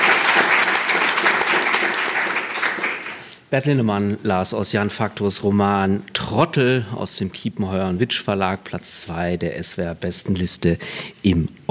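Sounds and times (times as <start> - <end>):
audience applause: 0.0 - 3.3
speech: 3.5 - 11.6.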